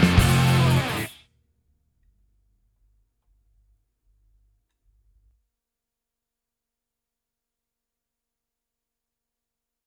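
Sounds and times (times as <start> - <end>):
instrumental mix: 0.0 - 1.1.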